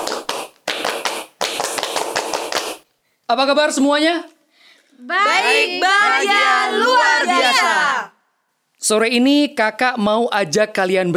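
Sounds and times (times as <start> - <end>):
group clapping a rhythmic scout pattern: 0.0 - 2.9
speech: 3.3 - 4.3, 4.9 - 8.1, 8.8 - 11.1.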